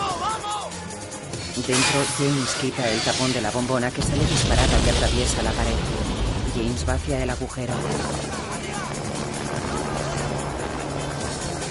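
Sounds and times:
speech: 1.6 - 8.5
helicopter flying away: 5.8 - 11.6.

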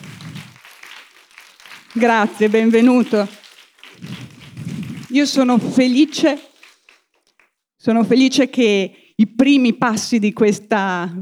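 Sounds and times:
audience applause: 0.0 - 7.2
speech: 2.0 - 3.4, 5.2 - 6.5, 7.8 - 11.2.

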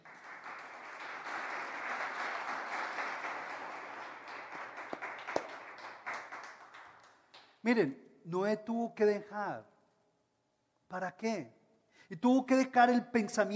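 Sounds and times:
audience applause: 0.0 - 7.5
speech: 7.6 - 9.7, 10.9 - 13.5.

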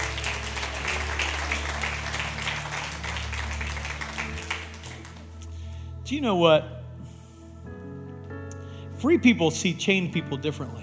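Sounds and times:
audience applause: 0.0 - 5.4
speech: 6.1 - 6.8, 9.0 - 10.8.

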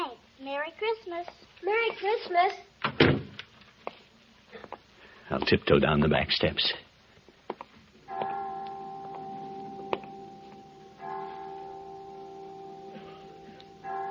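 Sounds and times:
speech: 0.6 - 3.2, 5.3 - 6.9
clock chime striking: 8.1 - 14.1.

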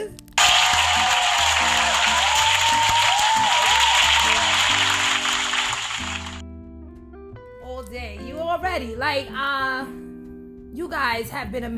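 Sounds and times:
round of applause: 0.4 - 6.4
speech: 8.8 - 10.0, 10.8 - 11.7.

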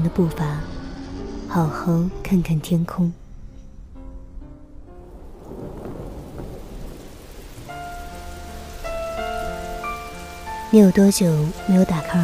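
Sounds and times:
speech: 0.0 - 0.7, 1.5 - 3.2, 10.7 - 12.2
rain pattering on leaves: 5.1 - 12.2.

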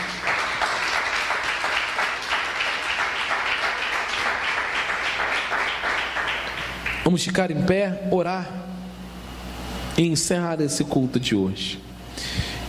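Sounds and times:
audience applauding: 0.0 - 7.2
speech: 7.1 - 8.7, 10.0 - 12.4.

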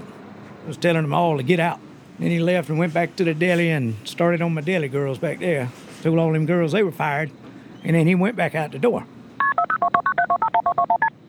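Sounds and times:
speech: 0.7 - 9.1
touch-tone telephone keypad dialing beeps: 9.4 - 11.1.

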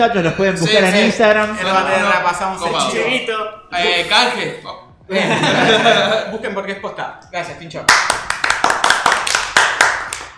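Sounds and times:
speech: 0.0 - 8.4
laughter: 5.1 - 6.4
hosts clapping hands: 7.9 - 10.3.

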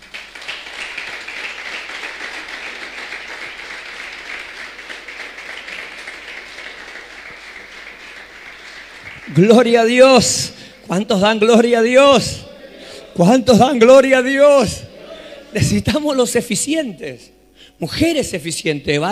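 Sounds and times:
audience applause: 0.0 - 10.6
speech: 9.3 - 12.4, 13.2 - 14.8, 15.5 - 19.1.

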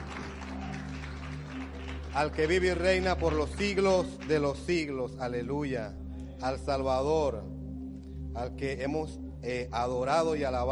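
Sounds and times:
audience clapping: 0.0 - 4.9
speech: 2.1 - 7.5, 8.4 - 10.6.

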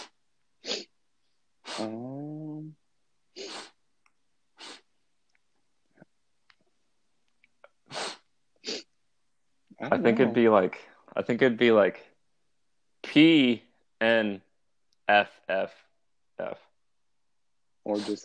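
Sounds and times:
voice imitating sniffing: 0.0 - 0.9, 1.6 - 2.4, 3.4 - 3.8, 4.6 - 4.9, 7.8 - 8.9, 17.9 - 18.2
speech: 1.8 - 2.0, 9.8 - 12.1, 13.2 - 14.5, 15.1 - 15.8, 16.4 - 16.6, 17.8 - 18.2.

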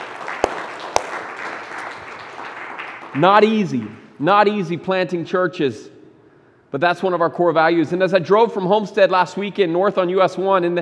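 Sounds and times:
round of applause: 0.0 - 3.9
speech: 3.1 - 5.9, 6.7 - 10.8.

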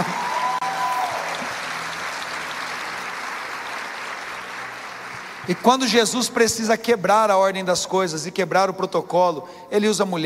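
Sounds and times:
audience applause: 0.0 - 6.2
speech: 5.5 - 10.2.

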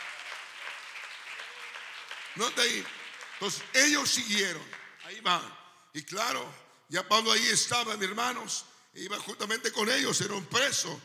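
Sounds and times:
audience applause: 0.0 - 5.2
speech: 2.4 - 11.0.

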